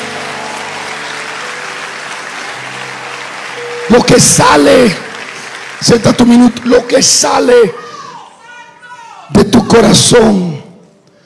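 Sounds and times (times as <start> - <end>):
loud audience applause: 0.0 - 8.6
speech: 3.9 - 5.0, 5.8 - 7.8, 9.7 - 10.5.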